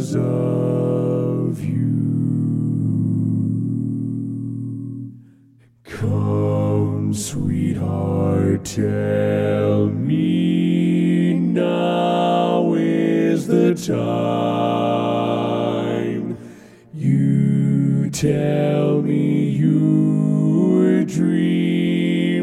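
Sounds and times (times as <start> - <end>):
bass vocal part learning track: 0.0 - 5.2, 5.8 - 22.4.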